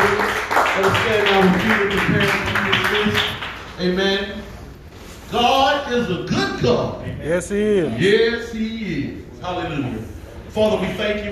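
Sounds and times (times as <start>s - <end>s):
audience clapping hands in praise: 0.0s - 3.8s
speech: 5.3s - 11.3s.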